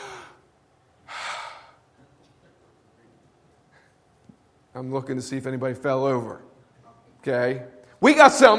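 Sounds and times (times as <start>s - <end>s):
congregation taking a deep breath together: 1.1s - 1.8s, 3.7s - 4.0s
speech: 4.8s - 6.5s, 7.2s - 8.5s.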